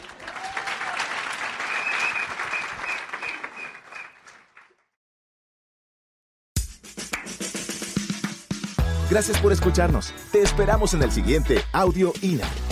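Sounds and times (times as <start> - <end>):
crowd applauding: 0.0 - 4.8
speech: 9.1 - 12.6.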